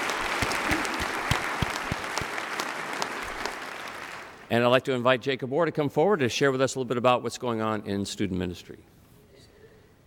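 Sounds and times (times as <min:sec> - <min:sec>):
audience applauding: 0:00.0 - 0:04.5
speech: 0:04.5 - 0:08.9.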